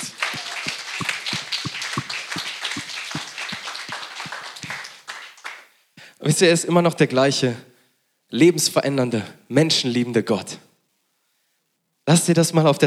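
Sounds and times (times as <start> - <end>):
audience applause: 0.0 - 5.6
speech: 6.2 - 7.7, 8.3 - 10.7, 12.1 - 12.8.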